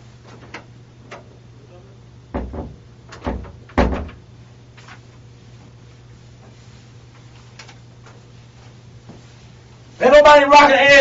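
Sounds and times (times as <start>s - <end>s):
door rattled and tugged from inside: 2.3s - 4.2s
speech: 10.0s - 11.0s.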